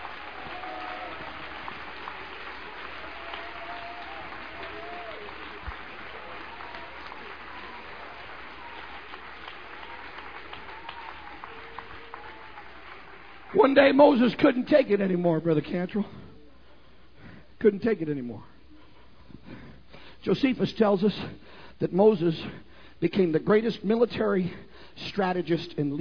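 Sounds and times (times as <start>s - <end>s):
audience applause: 0.0s - 14.2s
speech: 13.6s - 16.2s, 17.6s - 18.5s, 20.2s - 25.9s.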